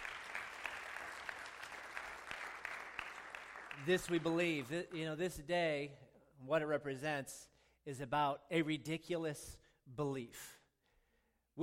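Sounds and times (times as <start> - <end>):
audience clapping: 0.0 - 5.2
speech: 3.8 - 10.6.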